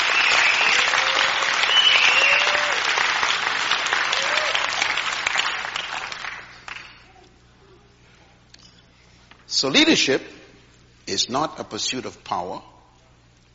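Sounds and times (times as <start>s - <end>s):
audience clapping hands: 0.0s - 7.1s
speech: 9.6s - 10.4s, 11.1s - 12.7s.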